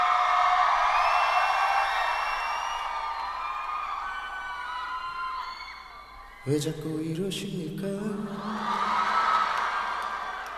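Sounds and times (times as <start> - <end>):
crowd clapping: 0.0 - 4.0, 8.9 - 10.5
whoops and shouts: 0.0 - 6.6, 8.4 - 10.5
speech: 6.4 - 8.9.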